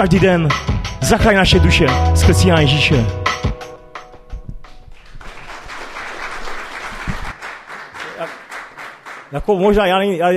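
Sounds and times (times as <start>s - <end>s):
speech: 0.0s - 3.2s, 9.3s - 10.3s
brief musical ending: 1.0s - 4.3s
audience applause: 5.0s - 9.6s.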